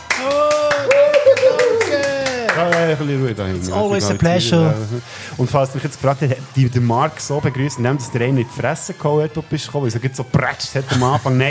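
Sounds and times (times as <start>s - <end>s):
rhythmic clapping: 0.0s - 3.2s
speech: 2.6s - 11.4s.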